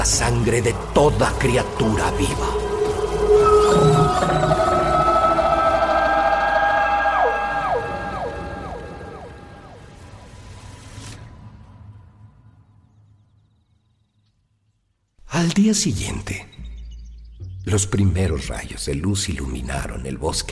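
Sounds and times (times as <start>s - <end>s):
speech: 0.0s - 4.6s, 15.5s - 16.6s, 17.7s - 20.4s
huge animal howling at the moon: 0.0s - 10.3s.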